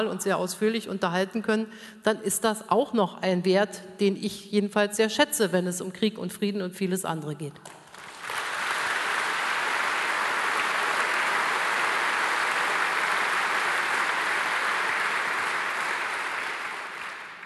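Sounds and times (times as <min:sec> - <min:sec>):
speech: 0:00.0 - 0:07.8
audience applause: 0:07.8 - 0:17.4.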